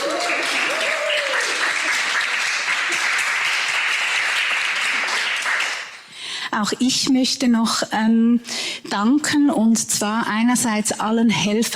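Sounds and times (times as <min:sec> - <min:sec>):
cheer: 0:00.0 - 0:04.0
crowd applause: 0:00.0 - 0:06.1
speech: 0:06.6 - 0:11.7.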